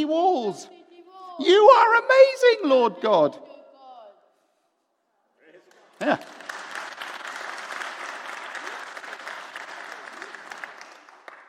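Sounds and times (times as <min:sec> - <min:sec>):
speech: 0:00.0 - 0:00.8, 0:01.4 - 0:03.5, 0:06.0 - 0:06.4
crowd applauding in a large room: 0:05.6 - 0:11.4.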